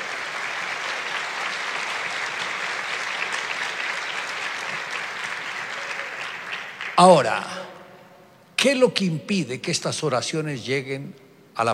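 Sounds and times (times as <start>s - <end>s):
audience applause: 0.0s - 7.2s
speech: 7.0s - 7.6s, 8.6s - 11.7s.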